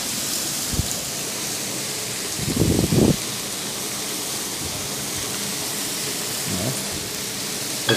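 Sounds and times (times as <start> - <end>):
fresh butter melting and sizzling in a frying pan: 0.0 - 7.9.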